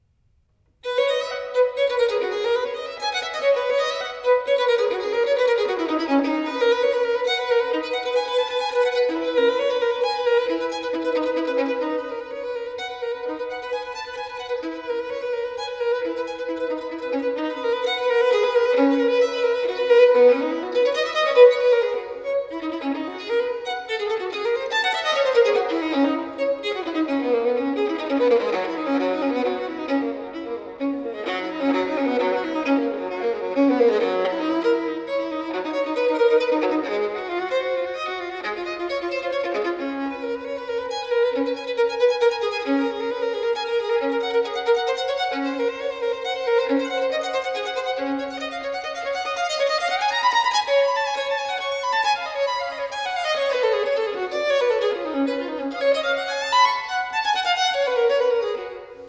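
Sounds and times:
violin sonata in C major, fast movement: 0.7 - 59.0.

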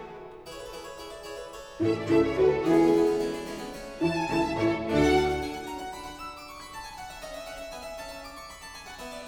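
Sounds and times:
keyboard concerto allegro: 1.8 - 6.5.

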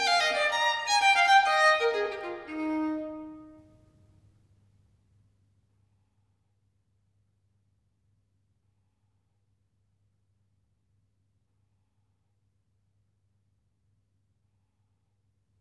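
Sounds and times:
solo violin gigue in E major: 0.0 - 3.6.

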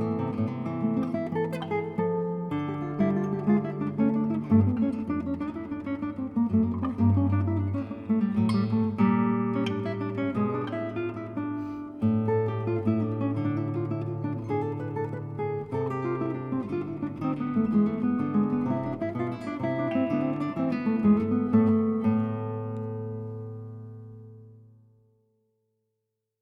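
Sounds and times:
classical guitar suite in A minor: 0.0 - 25.2.

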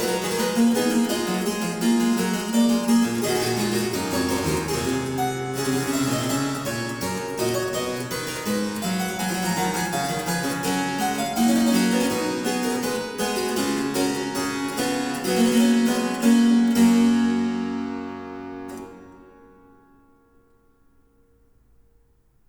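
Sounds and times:
fughetta on harpsichord: 0.0 - 20.2.

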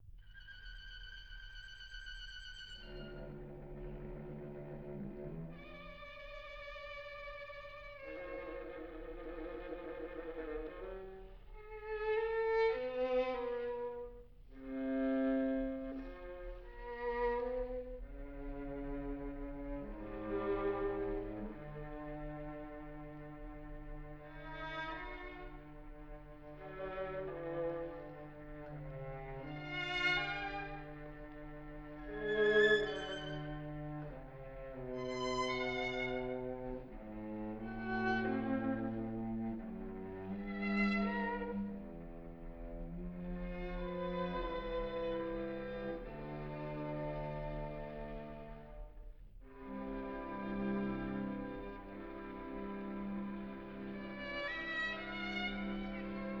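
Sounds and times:
string quartet in B flat major: 0.0 - 56.3.

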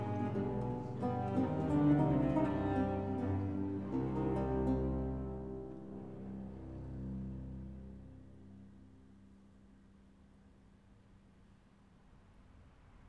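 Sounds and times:
choir singing: 0.0 - 8.1.

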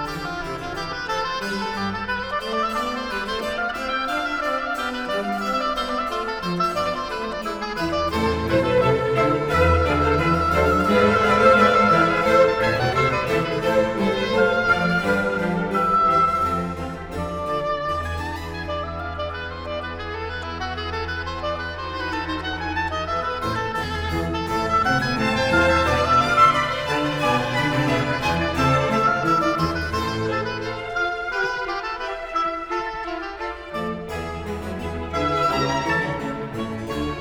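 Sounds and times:
oboe concerto music in D minor: 0.0 - 37.1.

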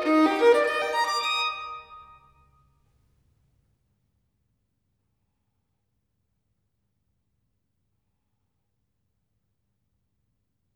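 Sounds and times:
solo violin: 0.0 - 2.3.

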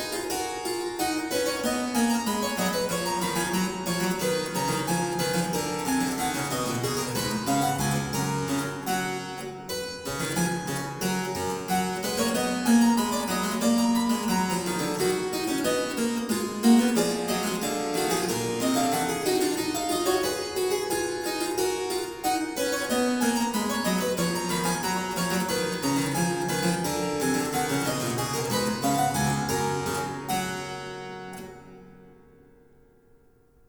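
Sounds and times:
harpsichord canon piece: 0.0 - 33.1.

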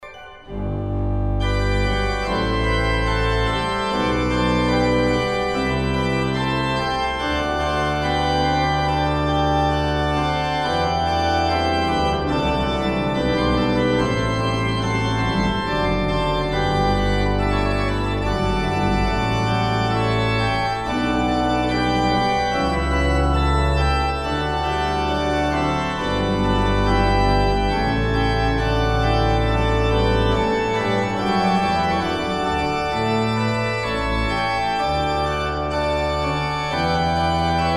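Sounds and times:
classical instrumental piece in G major: 0.0 - 37.7.

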